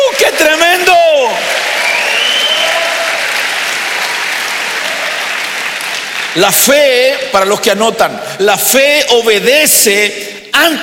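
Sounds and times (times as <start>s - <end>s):
faint cheering voices: 0.0s - 6.4s
audience clapping and applauding: 0.0s - 7.0s
speech: 6.4s - 10.8s.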